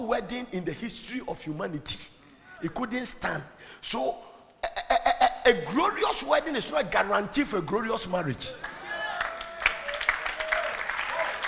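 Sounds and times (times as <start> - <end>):
speech: 0.1 - 8.8
audience clapping: 8.6 - 11.4.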